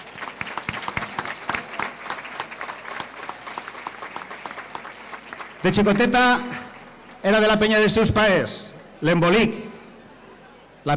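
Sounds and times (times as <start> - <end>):
audience applause: 0.0 - 6.0
speech: 5.6 - 6.6, 7.2 - 9.6.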